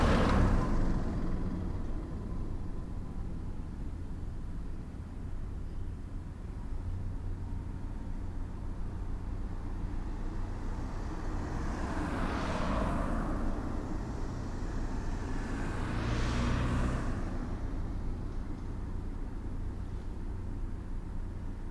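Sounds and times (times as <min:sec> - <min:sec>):
town road traffic: 0:00.0 - 0:21.6.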